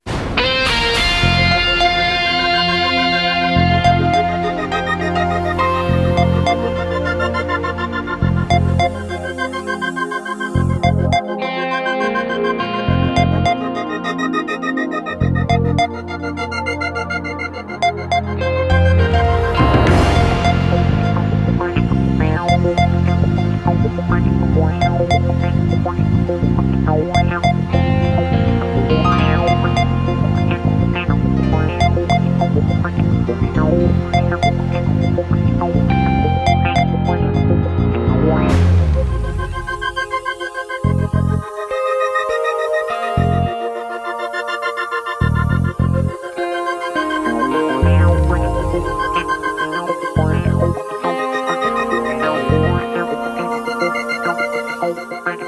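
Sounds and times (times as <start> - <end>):
on-hold music jingle: 0.1 - 41.7, 42.4 - 55.4.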